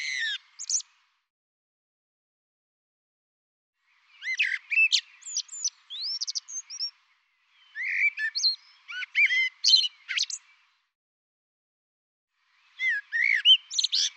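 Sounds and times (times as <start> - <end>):
bird song with chirps whistles and trilled notes: 0.0 - 1.2, 3.8 - 10.9, 12.4 - 14.1.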